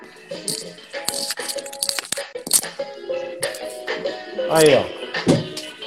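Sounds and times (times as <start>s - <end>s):
soundtrack song with shaker-like percussion: 0.3s - 2.8s
speech: 4.5s - 5.4s.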